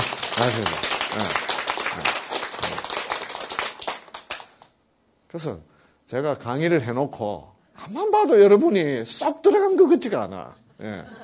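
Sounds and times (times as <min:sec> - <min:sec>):
applause: 0:00.0 - 0:04.7
speech: 0:00.4 - 0:01.4, 0:05.3 - 0:11.2.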